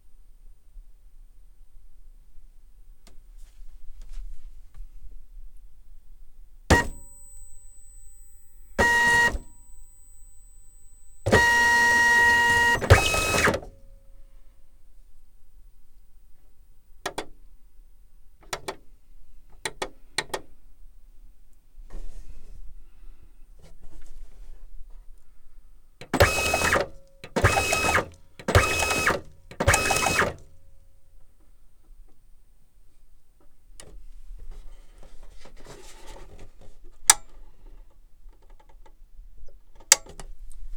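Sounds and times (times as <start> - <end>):
label printer startup feed: 6.7 - 13.6, 26.2 - 30.4.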